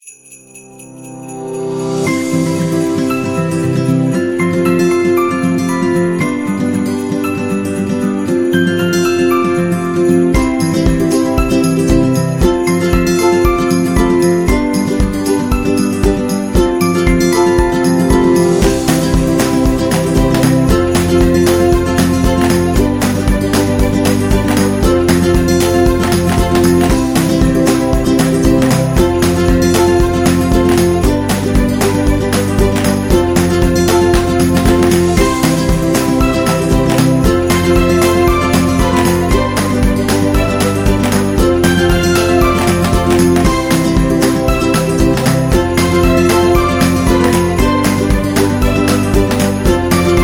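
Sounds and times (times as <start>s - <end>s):
happy upbeat Christmas music: 0.0s - 50.2s.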